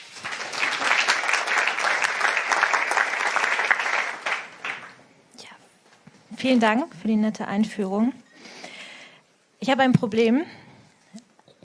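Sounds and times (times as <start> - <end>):
audience applause: 0.0 - 5.0
speech: 6.4 - 8.2, 9.6 - 10.6.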